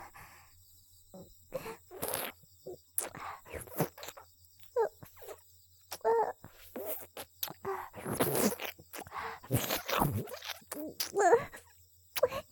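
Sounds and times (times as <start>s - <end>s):
erotic ear licking: 1.6s - 2.4s, 3.0s - 5.4s, 5.9s - 12.3s.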